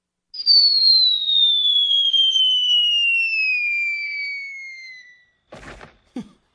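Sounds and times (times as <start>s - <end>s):
cartoon whistle of the coyote falling off a cliff: 0.4s - 5.4s.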